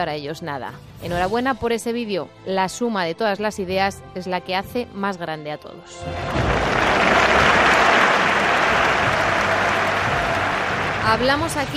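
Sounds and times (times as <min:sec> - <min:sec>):
speech: 0:00.0 - 0:07.5, 0:11.1 - 0:11.7
audience ovation applause: 0:06.1 - 0:11.7.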